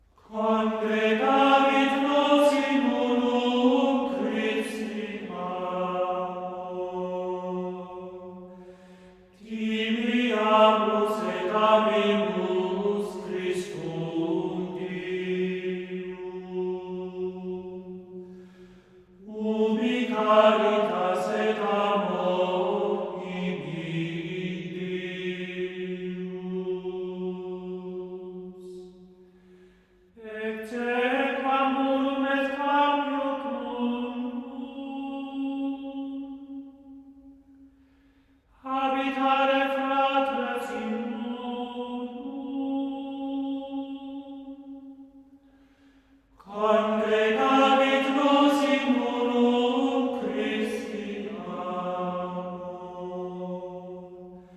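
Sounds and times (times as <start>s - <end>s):
Gregorian chant antiphon: 0.2s - 29.2s, 30.2s - 37.4s, 38.5s - 45.3s, 46.4s - 54.5s.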